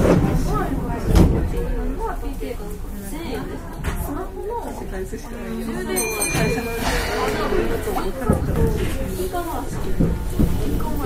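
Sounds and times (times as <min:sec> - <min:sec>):
Keihan Railway 6000 series express train rumble: 0:00.0 - 0:05.3, 0:06.1 - 0:11.0
passengers talking: 0:00.0 - 0:11.0
bright ringing tone with rapid ticking: 0:05.9 - 0:08.4.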